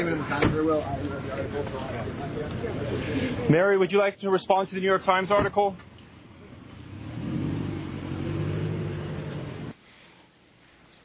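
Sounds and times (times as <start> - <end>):
speech: 0.0 - 5.9
car engine driving away: 6.2 - 9.8.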